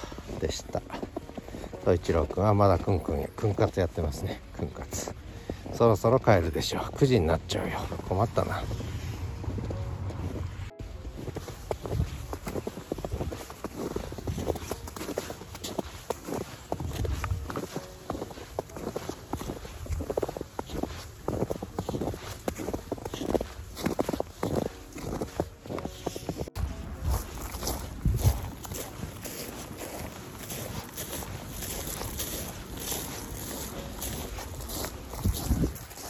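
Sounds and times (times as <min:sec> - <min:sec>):
footsteps crunching on frozen grass lightly dusted with snow: 0:00.0 - 0:36.0
speech: 0:01.8 - 0:05.1, 0:05.8 - 0:08.8
soft wind rumble: 0:07.6 - 0:14.6, 0:26.5 - 0:32.6, 0:33.8 - 0:36.0.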